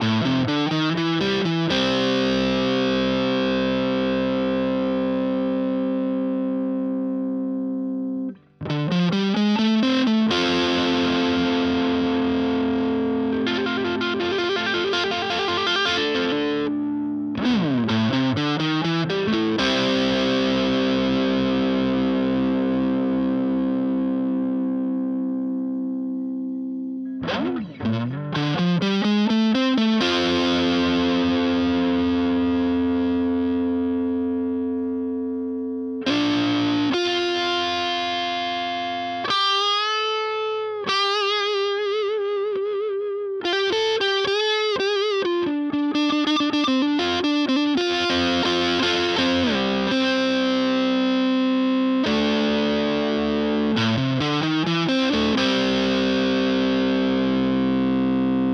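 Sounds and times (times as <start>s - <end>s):
Epiphone SG electric guitar neck pickup: 0.0s - 58.5s.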